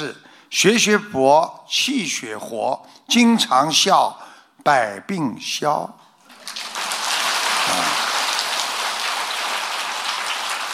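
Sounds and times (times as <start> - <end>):
speech: 0.0 - 6.0
applause: 6.3 - 10.7.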